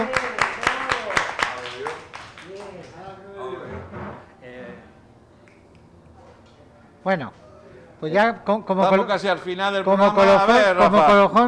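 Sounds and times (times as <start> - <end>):
audience applause: 0.0 - 3.2
speech: 7.1 - 7.4, 8.0 - 11.4.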